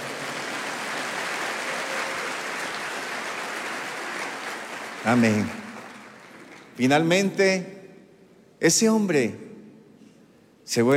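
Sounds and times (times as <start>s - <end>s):
crowd applause: 0.0s - 6.8s
speech: 5.0s - 5.6s, 6.8s - 7.8s, 8.6s - 9.4s, 10.7s - 10.9s.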